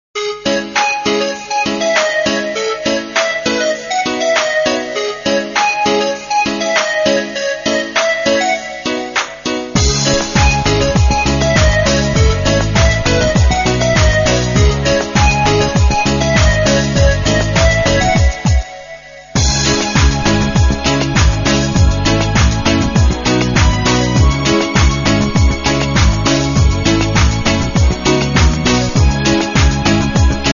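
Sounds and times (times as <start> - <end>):
instrumental music: 0.2 - 30.5.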